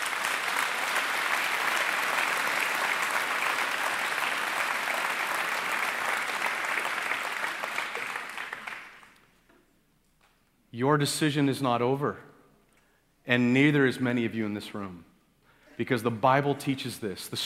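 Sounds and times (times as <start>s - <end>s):
audience applauding: 0.0s - 9.2s
speech: 10.8s - 12.3s, 13.3s - 15.1s, 15.8s - 17.4s.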